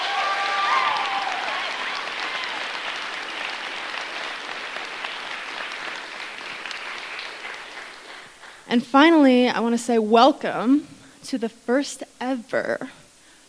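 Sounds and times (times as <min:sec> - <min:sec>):
audience clapping at a tenants' town hall: 0:00.0 - 0:08.8
speech: 0:08.7 - 0:13.0.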